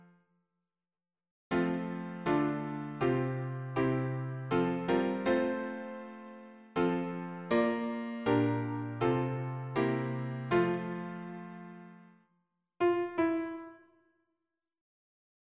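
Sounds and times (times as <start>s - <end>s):
piano harmony: 1.5s - 12.1s, 12.8s - 13.8s.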